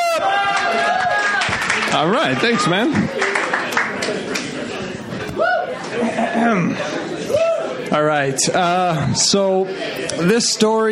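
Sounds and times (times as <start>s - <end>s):
whoops and cheers: 0.0s - 1.6s, 5.4s - 5.7s, 7.3s - 7.7s
audience applause: 0.2s - 4.8s
speech: 1.9s - 3.3s, 6.4s - 7.0s, 7.9s - 10.8s
laughter: 2.8s - 7.5s.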